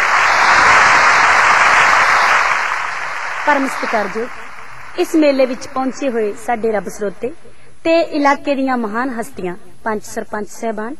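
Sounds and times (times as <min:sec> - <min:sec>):
audience applause at a village fair for a female singer: 0:00.0 - 0:06.2
speech: 0:03.5 - 0:04.4, 0:05.0 - 0:10.9.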